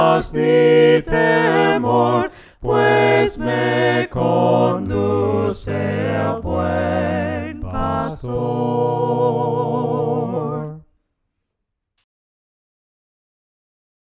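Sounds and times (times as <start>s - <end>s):
voices singing hymns a cappella: 0.0s - 10.9s.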